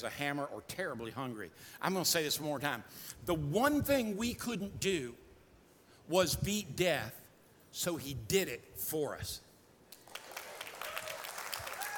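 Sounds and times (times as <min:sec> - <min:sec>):
speech: 0:00.0 - 0:05.2, 0:06.1 - 0:09.4
light scattered audience applause: 0:10.0 - 0:11.9.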